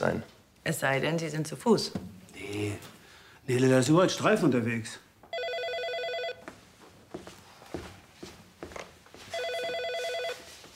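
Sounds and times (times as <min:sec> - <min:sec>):
speech: 0:00.0 - 0:05.0
telephone ringing: 0:05.3 - 0:06.4, 0:09.3 - 0:10.6
footsteps and shuffling movement: 0:06.4 - 0:10.7.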